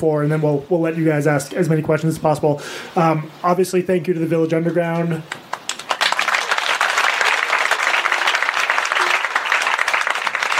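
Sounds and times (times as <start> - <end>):
speech: 0.0 - 5.4
crowd applause: 5.5 - 10.5.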